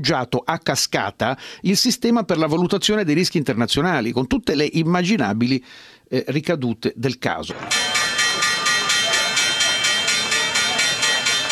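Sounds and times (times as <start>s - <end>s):
speech: 0.0s - 8.0s
Wall Street stock exchange bell ringing: 7.5s - 11.5s.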